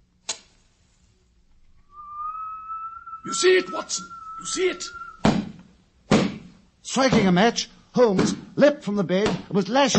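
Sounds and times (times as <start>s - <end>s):
gentle hissing whistle: 1.7s - 5.3s
speech: 3.2s - 5.3s, 6.9s - 9.9s.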